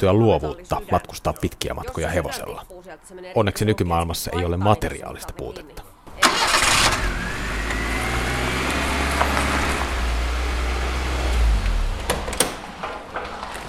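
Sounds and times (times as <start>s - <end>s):
speech: 0.0s - 6.5s
small Fiat car engine starting: 6.2s - 12.8s.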